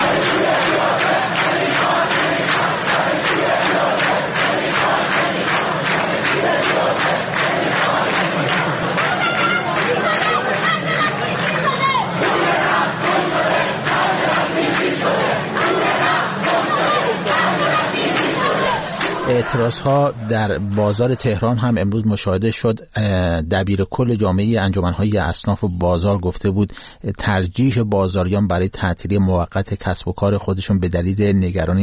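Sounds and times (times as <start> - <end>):
students chanting slogans at a protest rally at the University of Tehran: 0.0 - 21.2
speech: 19.5 - 31.8.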